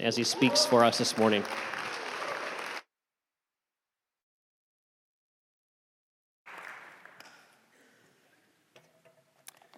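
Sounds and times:
speech: 0.0s - 1.9s
audience applause: 0.1s - 2.9s.

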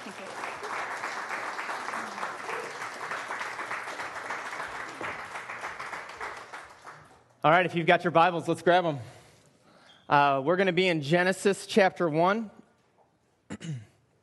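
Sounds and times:
crowd applause: 0.0s - 7.2s
speech: 7.4s - 9.2s, 10.1s - 12.6s, 13.6s - 13.9s.

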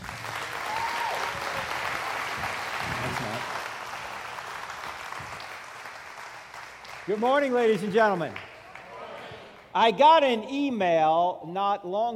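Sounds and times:
audience applause greeting a guest speaker at a Southern Ohio gathering: 0.0s - 9.7s
speech: 7.1s - 8.5s, 9.8s - 12.1s.

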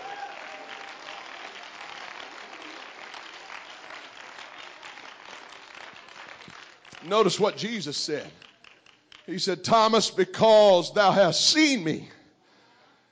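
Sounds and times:
people clapping hands: 0.0s - 9.5s
speech: 7.0s - 8.5s, 9.3s - 12.2s.

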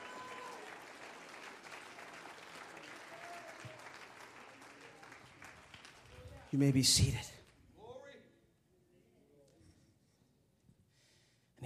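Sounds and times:
audience clapping hands: 0.0s - 7.6s
speech: 6.5s - 7.4s.

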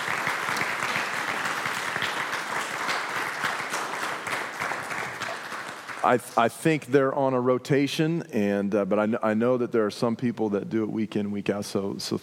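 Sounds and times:
congregation applauding its church setup team: 0.0s - 6.5s
speech: 6.0s - 12.2s.

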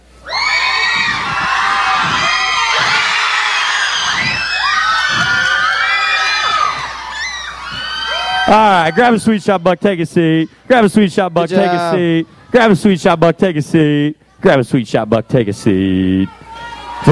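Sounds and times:
crowd cheering fast and loud: 0.2s - 10.5s, 16.3s - 17.1s
speech: 8.5s - 16.4s.

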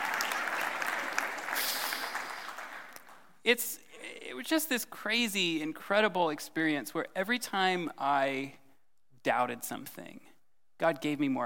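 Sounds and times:
audience applause: 0.0s - 3.2s
speech: 3.4s - 3.8s, 4.4s - 8.6s, 9.2s - 11.4s.

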